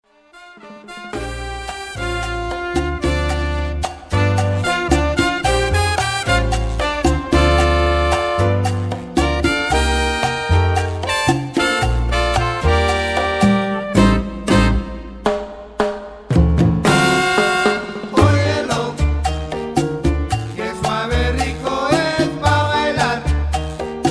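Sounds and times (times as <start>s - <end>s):
Latin jazz music: 0.1s - 24.0s.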